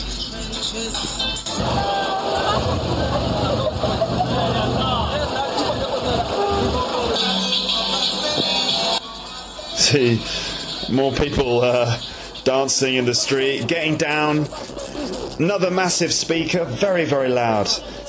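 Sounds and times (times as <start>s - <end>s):
dense chatter of a busy carnival street crowd: 0.0s - 18.0s
speech: 0.7s - 2.0s, 9.9s - 14.8s, 15.4s - 18.0s
laughter: 1.5s - 7.5s, 14.1s - 15.4s
low rumbling undertone: 1.6s - 6.9s.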